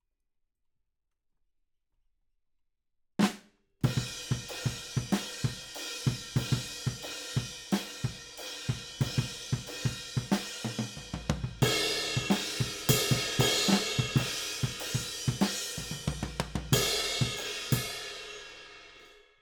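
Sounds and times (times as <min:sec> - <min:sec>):
ride cymbal: 0:04.2 - 0:18.6.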